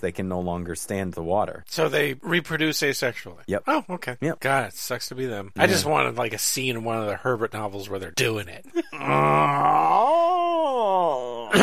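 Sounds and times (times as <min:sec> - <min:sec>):
speech: 0:00.0 - 0:11.6
voice imitating a worm with a long droning groan: 0:08.9 - 0:11.6.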